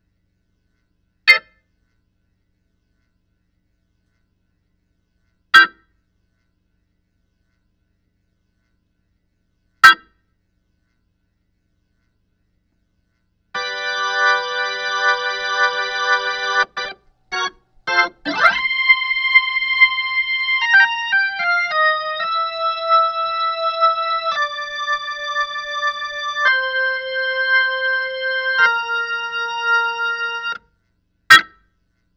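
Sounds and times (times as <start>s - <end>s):
organ: 13.6s - 30.6s.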